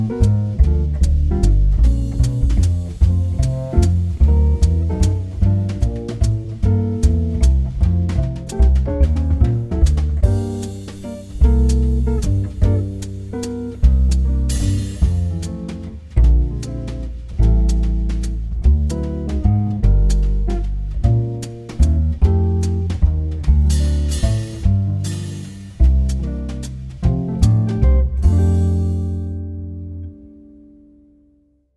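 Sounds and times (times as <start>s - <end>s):
jazz waltz piano play-along: 0.0s - 30.4s.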